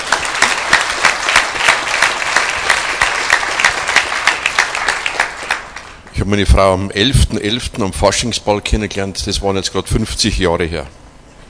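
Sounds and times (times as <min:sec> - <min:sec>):
applause: 0:00.0 - 0:06.3
speech: 0:06.2 - 0:11.0.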